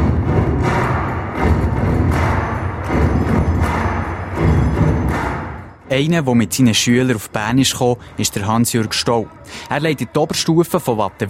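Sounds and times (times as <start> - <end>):
large group of students clapping and stomping to a song: 0.0 - 5.8
speech: 6.0 - 11.2.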